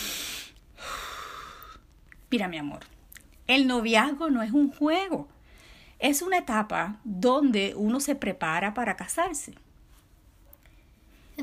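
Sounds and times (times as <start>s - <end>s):
deep breath: 0.0s - 1.8s, 5.4s - 6.0s
speech: 2.3s - 5.4s, 6.0s - 9.6s.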